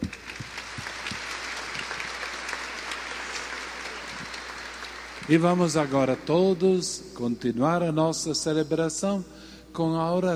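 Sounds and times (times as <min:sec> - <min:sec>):
applause for the catechists at a church celebration: 0:00.0 - 0:06.8
speech: 0:05.3 - 0:10.3.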